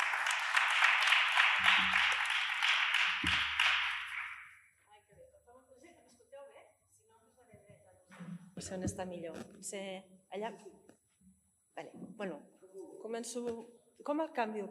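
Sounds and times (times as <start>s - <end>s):
audience applause: 0.0s - 4.5s
speech: 8.7s - 10.8s, 12.2s - 12.5s, 13.1s - 14.7s.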